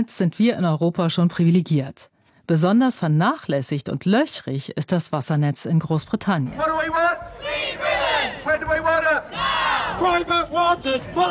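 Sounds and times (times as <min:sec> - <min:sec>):
speech: 0:00.0 - 0:11.2
protest crowd chanting in the street: 0:06.6 - 0:11.2.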